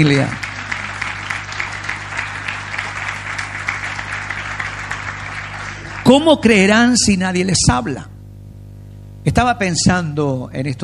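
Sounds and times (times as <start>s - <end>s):
speech: 0.0s - 0.4s, 6.1s - 8.1s, 9.2s - 10.8s
audience applause: 0.0s - 6.7s.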